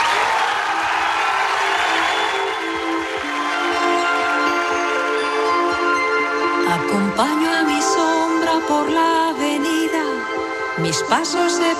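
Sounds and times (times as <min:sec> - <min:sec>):
audience applause: 0:00.0 - 0:05.7
sustained tonal voices or music humming: 0:00.0 - 0:11.7
speech: 0:10.8 - 0:11.7.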